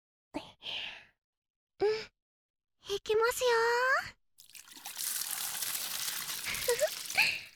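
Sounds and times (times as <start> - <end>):
speech: 3.0 - 4.2
water rinsing shampoo out of washed hair: 4.4 - 7.5.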